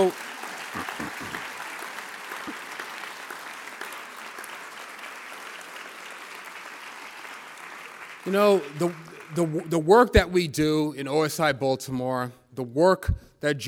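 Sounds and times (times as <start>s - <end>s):
speech: 0.0s - 0.2s, 8.3s - 13.6s
applause from a remote audience at a foundation gathering: 0.0s - 10.2s.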